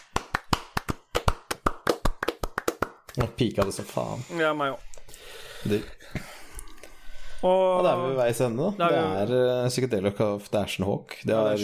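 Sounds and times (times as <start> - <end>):
small round of applause: 0.0 - 3.9
speech: 3.2 - 6.3, 7.4 - 11.6.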